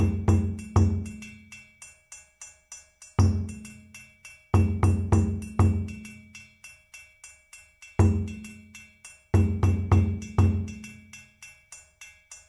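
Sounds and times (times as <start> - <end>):
kuku rhythm on dunun drums: 0.0 - 1.8, 3.0 - 6.7, 7.8 - 11.5.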